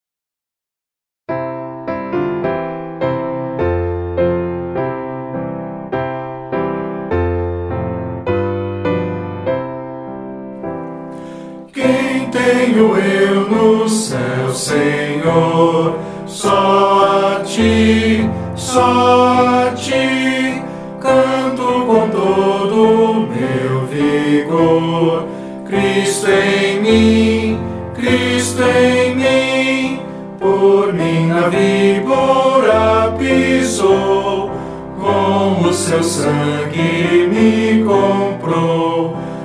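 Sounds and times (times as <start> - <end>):
piano: 1.3 - 39.4
person singing: 11.7 - 39.4.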